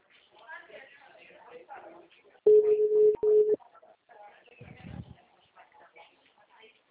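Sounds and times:
people talking: 0.2s - 6.8s
low steady ringback tone of an outgoing phone call: 2.5s - 3.6s.

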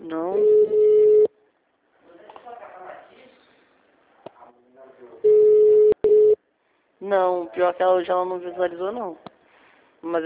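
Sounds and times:
unanswered telephone ringback tone: 0.4s - 1.3s, 5.3s - 6.4s
speech: 7.1s - 9.3s, 10.0s - 10.2s.

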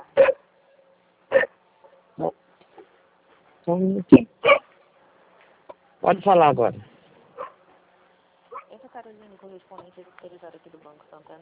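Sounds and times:
speech: 2.2s - 2.4s, 3.7s - 4.6s, 6.1s - 6.9s
dog barking on the street: 4.4s - 4.7s, 7.4s - 7.6s.

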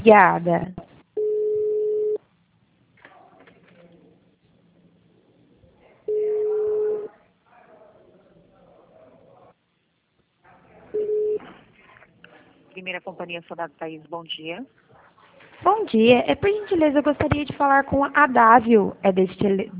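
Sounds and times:
speech: 0.0s - 0.8s, 12.8s - 14.8s, 15.6s - 19.7s
telephone tones during call transfer: 1.2s - 2.2s, 6.1s - 7.1s, 11.0s - 11.6s
faint murmur: 2.9s - 19.7s.

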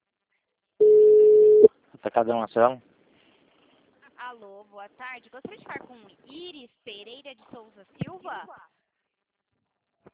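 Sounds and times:
telephone busy signal: 0.8s - 1.7s
speech: 2.0s - 2.9s, 4.4s - 8.8s.

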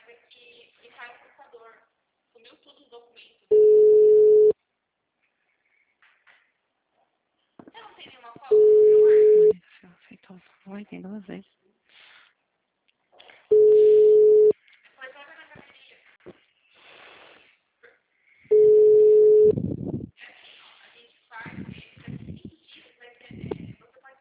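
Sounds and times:
telephone busy tones: 3.5s - 4.6s, 8.5s - 9.6s, 13.5s - 14.6s, 18.5s - 19.6s
recorded Portuguese voice speaking: 8.0s - 11.5s, 21.4s - 23.9s
speech: 10.7s - 11.6s.

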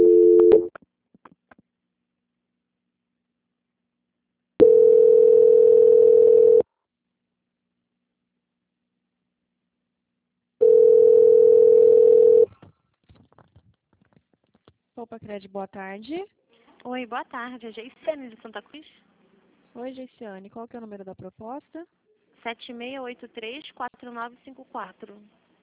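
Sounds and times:
telephone line tone during a call transfer: 0.0s - 0.7s, 4.6s - 6.6s, 10.6s - 12.5s
speech: 15.3s - 19.1s, 19.8s - 25.4s.

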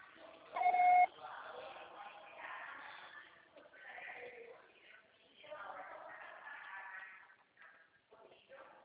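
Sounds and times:
TIM mobile voicemail electronic beep over a telephone line: 0.6s - 1.1s.

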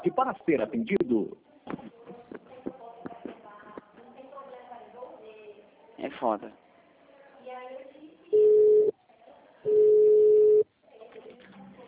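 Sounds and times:
speech: 0.1s - 1.5s, 6.0s - 6.6s
telephone busy tone after a dropped call: 8.4s - 8.9s, 9.7s - 10.6s.

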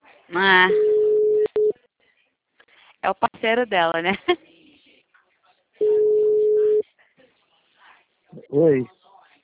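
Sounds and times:
speech: 0.3s - 0.9s, 3.0s - 4.5s, 8.4s - 9.0s
telephone tone after a dropped phone call: 0.7s - 1.7s, 5.8s - 6.8s.

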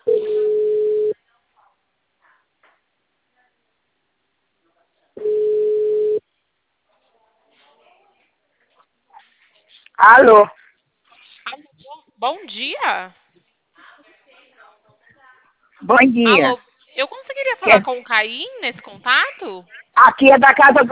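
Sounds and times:
telephone ringing tone during outgoing call: 5.2s - 6.2s
speech: 10.0s - 10.6s, 12.2s - 13.2s, 15.8s - 20.9s.

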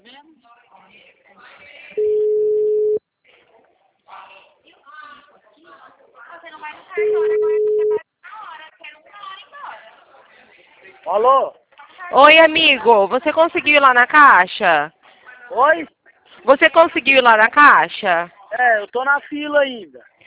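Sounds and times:
ringback tone of an outgoing phone call: 2.0s - 3.0s, 7.0s - 8.0s
speech: 11.2s - 20.2s.

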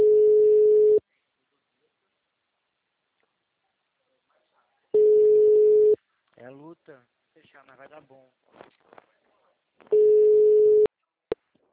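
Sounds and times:
telephone call tone while dialing someone: 0.0s - 1.0s, 5.0s - 6.0s, 9.9s - 10.9s
speech: 6.9s - 9.2s, 9.8s - 10.4s.

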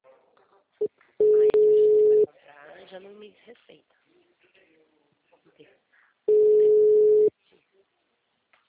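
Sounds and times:
telephone dial tone while placing a call: 1.3s - 2.2s, 6.3s - 7.3s
speech: 3.0s - 4.1s, 5.5s - 5.9s.

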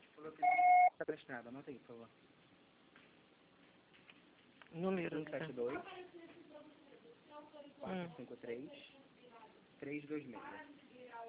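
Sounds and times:
speech: 0.2s - 2.4s, 4.7s - 11.2s
answering machine beep tone: 0.4s - 0.9s.

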